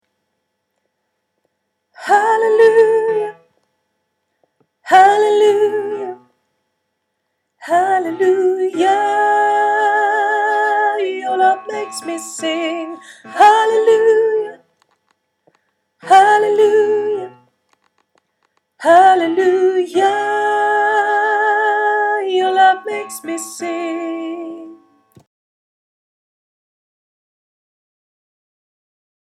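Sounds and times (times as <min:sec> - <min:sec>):
soprano singing: 0:02.0 - 0:03.5, 0:04.9 - 0:06.3, 0:07.6 - 0:14.7, 0:16.0 - 0:17.4, 0:18.8 - 0:25.2.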